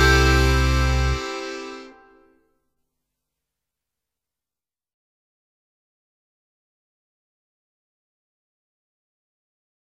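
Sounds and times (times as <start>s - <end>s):
instrumental music: 0.0s - 2.4s.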